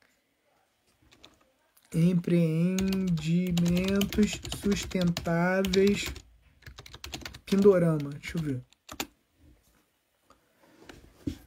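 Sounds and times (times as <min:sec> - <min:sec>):
computer keyboard typing a search into Google: 0:01.1 - 0:01.4, 0:02.6 - 0:09.2
speech: 0:01.9 - 0:06.2, 0:07.5 - 0:09.0.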